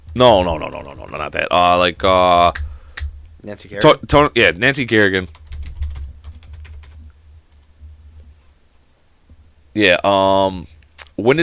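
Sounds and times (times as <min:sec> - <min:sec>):
low steady hum: 0:00.0 - 0:11.4
speech: 0:00.2 - 0:02.7, 0:03.4 - 0:05.4, 0:09.8 - 0:11.4
typing on a computer keyboard: 0:05.2 - 0:07.7.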